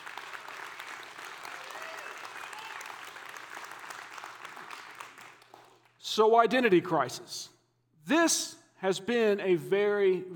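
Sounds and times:
audience applause: 0.0s - 5.8s
speech: 6.1s - 7.5s, 8.1s - 10.3s.

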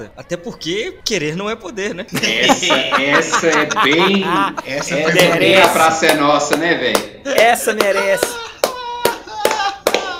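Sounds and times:
speech: 0.0s - 8.4s
laughter: 2.1s - 6.0s, 8.0s - 10.1s
sharp hand claps: 5.4s - 10.1s.

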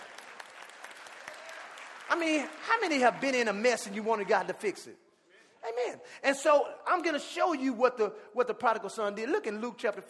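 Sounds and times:
audience applause: 0.0s - 4.6s
speech: 2.1s - 5.0s, 5.7s - 10.0s.

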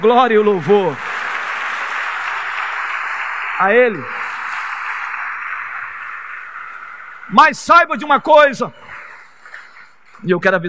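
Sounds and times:
speech: 0.0s - 1.1s, 3.6s - 4.2s, 7.3s - 8.8s, 10.2s - 10.6s
audience applause: 0.0s - 8.2s.

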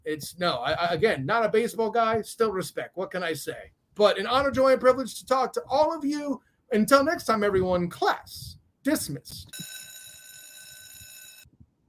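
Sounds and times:
speech: 0.1s - 9.9s
bell ringing: 9.5s - 11.5s.

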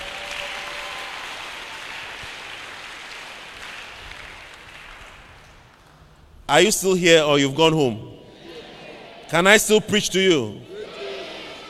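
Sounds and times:
crowd clapping: 0.0s - 6.0s
speech: 6.5s - 8.1s, 9.3s - 10.7s.

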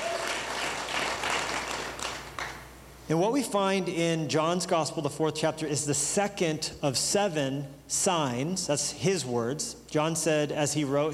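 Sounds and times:
church congregation applauding to welcome first-time guests: 0.0s - 2.6s
speech: 3.1s - 11.1s.

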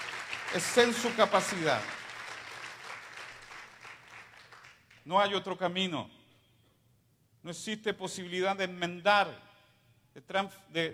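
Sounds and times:
audience applause: 0.0s - 4.8s
speech: 0.5s - 2.0s, 5.0s - 6.2s, 7.4s - 9.5s, 10.1s - 10.9s.

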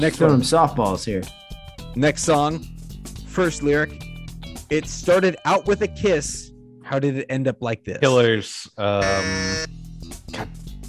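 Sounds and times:
speech: 0.0s - 1.4s, 2.0s - 2.7s, 3.4s - 4.1s, 4.7s - 10.6s
game show buzzer pressed: 9.0s - 9.7s.

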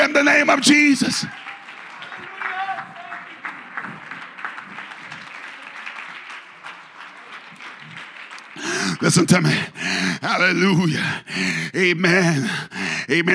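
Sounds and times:
audience hand clapping: 0.0s - 10.2s
speech: 0.2s - 1.5s, 9.0s - 13.3s.

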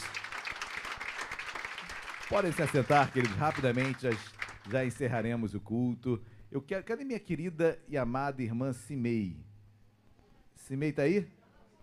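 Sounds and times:
audience applauding: 0.0s - 5.0s
speech: 2.3s - 9.5s, 10.6s - 11.4s.

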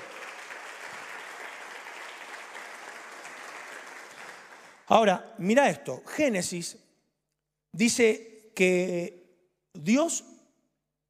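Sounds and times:
audience applause: 0.0s - 4.9s
speech: 4.9s - 6.8s, 7.8s - 9.2s, 9.8s - 10.3s.

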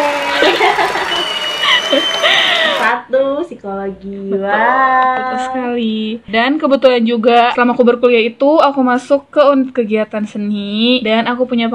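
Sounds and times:
audience applause: 0.0s - 2.9s
laughter: 0.0s - 2.9s
speech: 3.0s - 11.7s.

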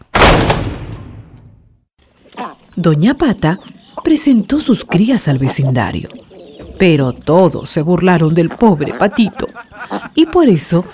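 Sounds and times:
door slamming shut: 0.0s - 1.6s
speech: 2.4s - 6.2s, 6.8s - 9.4s, 10.2s - 10.9s
laughter: 8.3s - 10.9s.

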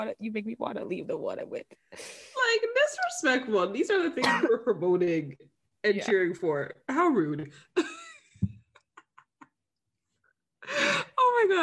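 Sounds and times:
speech: 0.0s - 8.5s, 10.7s - 11.6s
person coughing: 4.2s - 4.6s.

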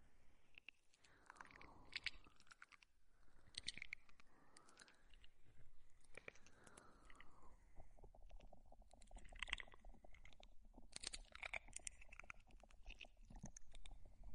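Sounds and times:
crunchy chewing noises: 0.5s - 5.3s, 6.0s - 14.2s
wet mouth clicks and smacks: 0.6s - 5.3s, 8.0s - 14.3s.

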